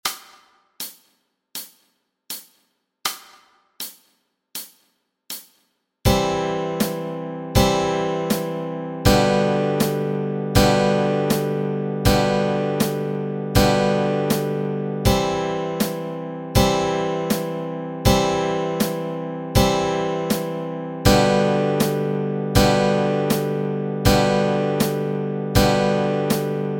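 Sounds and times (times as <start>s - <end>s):
easy guitar chords: 6.1s - 26.7s.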